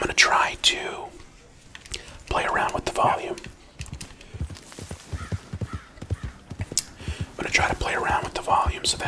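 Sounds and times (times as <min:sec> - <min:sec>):
speech: 0:00.2 - 0:01.1, 0:08.5 - 0:09.0
horse hooves clip-clopping in a video game: 0:03.3 - 0:09.0.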